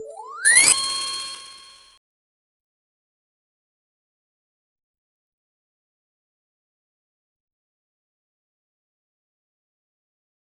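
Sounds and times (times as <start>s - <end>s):
ludo mobile game reset sound: 0.0s - 1.9s.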